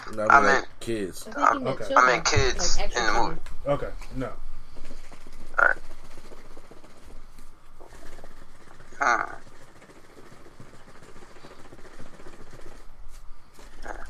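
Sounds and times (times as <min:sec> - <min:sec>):
speech: 0:00.1 - 0:04.4
shaking a baby bottle: 0:04.7 - 0:13.0.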